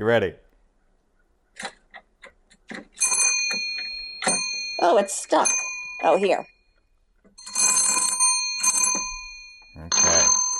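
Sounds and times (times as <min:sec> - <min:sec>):
speech: 0:00.0 - 0:00.4, 0:04.8 - 0:06.5
twist doorbell ringing: 0:03.0 - 0:06.8, 0:07.4 - 0:10.5.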